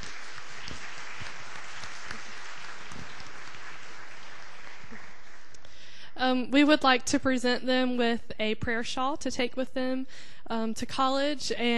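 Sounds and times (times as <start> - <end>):
audience applause: 0.0 - 5.6
speech: 6.2 - 11.7.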